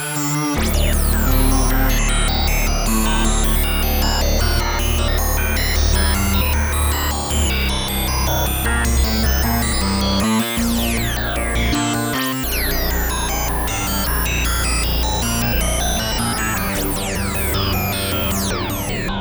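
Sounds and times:
chaotic noise: 0:00.2 - 0:19.1.

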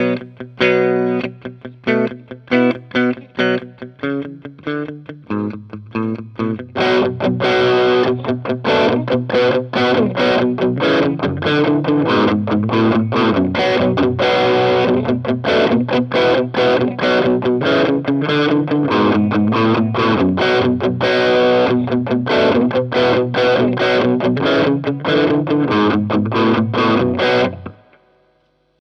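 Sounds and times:
Boss OD 200 overdrive: 0:00.0 - 0:28.8.

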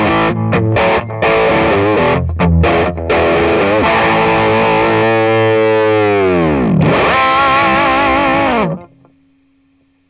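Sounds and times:
electric guitar through Vox MV50 amp at full gain: 0:00.0 - 0:09.2.

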